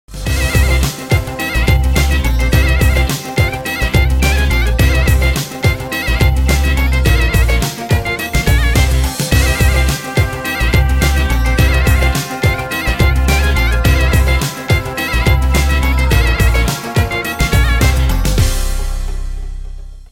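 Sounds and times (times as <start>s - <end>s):
instrumental music: 0.1s - 20.1s.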